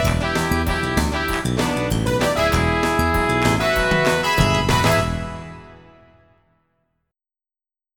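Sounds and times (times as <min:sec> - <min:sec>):
funk music: 0:00.0 - 0:06.3.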